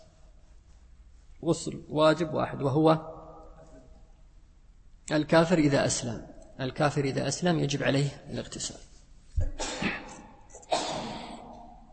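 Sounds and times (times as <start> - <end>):
speech: 1.4 - 3.2, 5.1 - 10.0
person sneezing: 9.4 - 11.8.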